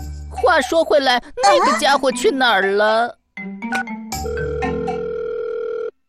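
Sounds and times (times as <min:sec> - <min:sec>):
speech: 0:00.6 - 0:03.6
unanswered phone call ringing tones: 0:03.7 - 0:06.0.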